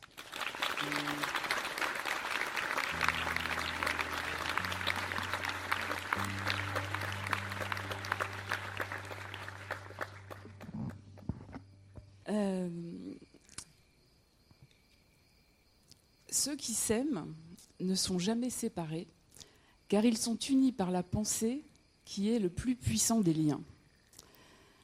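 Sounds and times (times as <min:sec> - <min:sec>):
audience applause: 0:00.0 - 0:11.2
speech: 0:16.4 - 0:19.2, 0:19.9 - 0:23.7.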